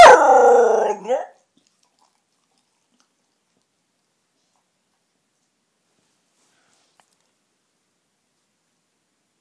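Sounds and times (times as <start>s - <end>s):
bear howling: 0.0s - 1.3s.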